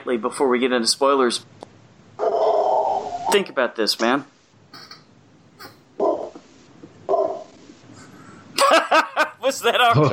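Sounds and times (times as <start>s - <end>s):
speech: 0.0s - 1.6s, 3.3s - 4.9s, 9.5s - 10.1s
faint dog yelp: 2.2s - 3.3s
laughter: 8.6s - 10.1s.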